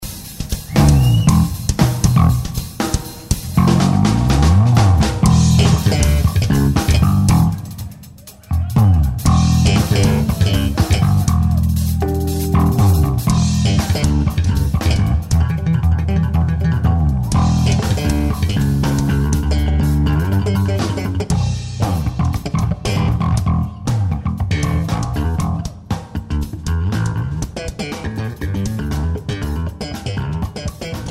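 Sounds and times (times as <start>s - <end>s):
electric bass: 0.0s - 31.0s.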